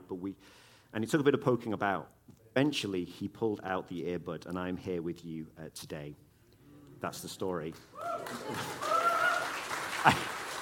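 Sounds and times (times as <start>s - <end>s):
speech: 0.1s - 6.2s, 7.0s - 8.8s, 10.0s - 10.3s
audience applause: 8.0s - 10.6s.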